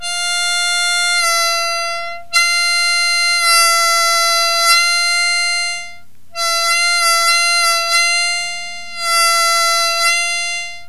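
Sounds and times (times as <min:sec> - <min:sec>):
harmonica note bending: 0:00.0 - 0:10.8.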